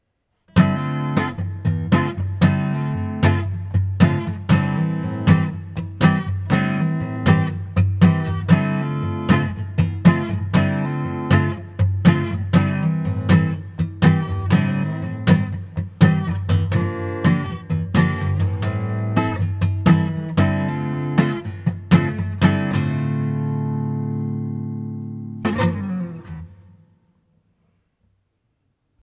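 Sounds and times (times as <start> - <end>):
acoustic guitar in a small hall: 0.4 - 27.4.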